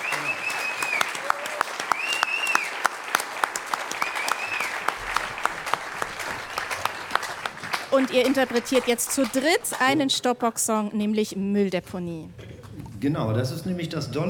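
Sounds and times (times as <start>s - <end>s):
audience applause: 0.0s - 10.1s
speech: 8.0s - 12.4s, 13.0s - 14.2s.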